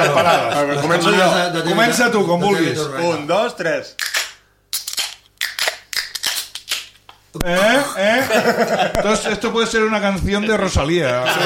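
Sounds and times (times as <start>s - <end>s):
laughter: 0.0s - 1.2s, 7.5s - 11.4s
speech: 0.0s - 4.2s, 7.4s - 11.4s
beer being opened: 4.0s - 7.2s.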